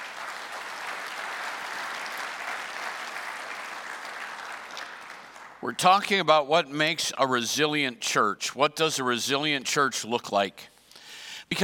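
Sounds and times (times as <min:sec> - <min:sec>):
church congregation clapping hands during a morning service: 0:00.0 - 0:06.2
speech: 0:05.6 - 0:10.7.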